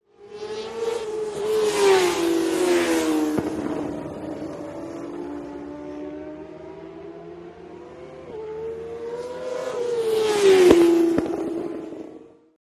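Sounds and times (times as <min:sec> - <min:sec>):
motorcycles road racing: 0:00.1 - 0:12.6.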